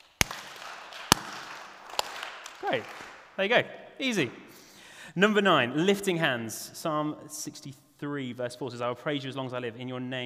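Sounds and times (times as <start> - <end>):
people clapping hands: 0.0 - 3.4
speech: 2.6 - 4.4, 5.2 - 10.2.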